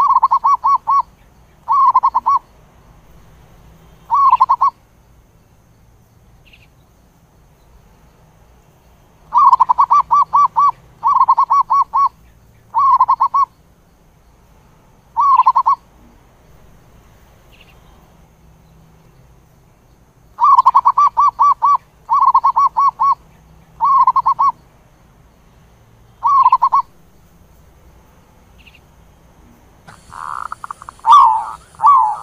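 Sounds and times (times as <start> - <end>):
zebra dove cooing: 0.0 - 1.1, 1.7 - 2.4, 4.1 - 4.8, 9.3 - 13.5, 15.2 - 15.8, 20.4 - 23.2, 23.8 - 24.6, 26.2 - 26.9, 29.9 - 32.2.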